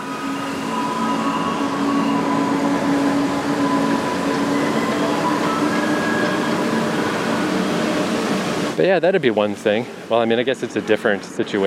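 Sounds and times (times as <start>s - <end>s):
electronic jingle played by a garbage truck: 0.0s - 8.1s
garbage truck rumbling past: 0.0s - 8.8s
speech: 8.8s - 11.6s.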